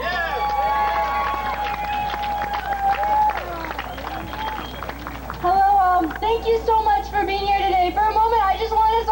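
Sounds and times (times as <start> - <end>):
crowd applauding: 0.0 - 6.4
crowd cheering: 0.0 - 9.0.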